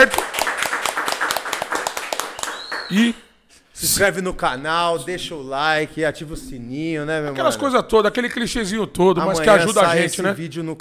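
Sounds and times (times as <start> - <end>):
applause, hand clapping: 0.0 - 3.2
speech: 2.9 - 3.2, 3.8 - 10.8.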